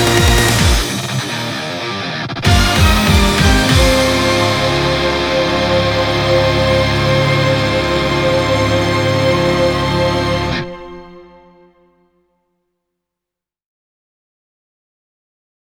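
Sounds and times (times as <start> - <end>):
short strings: 0.0 - 12.0.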